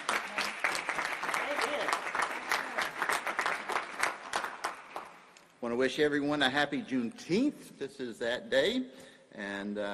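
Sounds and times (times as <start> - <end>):
audience applause: 0.0 - 5.2
speech: 5.7 - 9.9.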